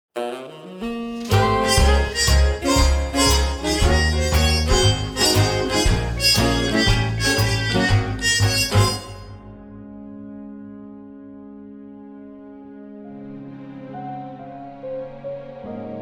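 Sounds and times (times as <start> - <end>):
swing music: 0.2 - 9.6.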